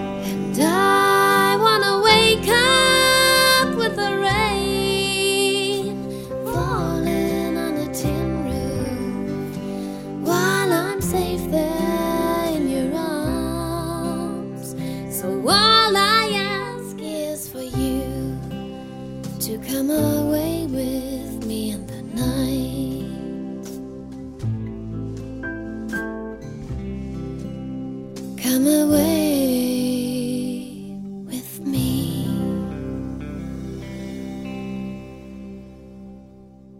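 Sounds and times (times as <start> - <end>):
person singing in English: 0.1 - 18.6, 19.4 - 23.4, 28.4 - 32.9.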